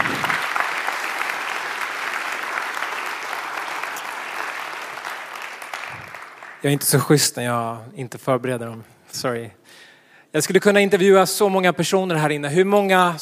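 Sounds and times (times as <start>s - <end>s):
audience applause: 0.0s - 6.8s
speech: 6.6s - 13.2s.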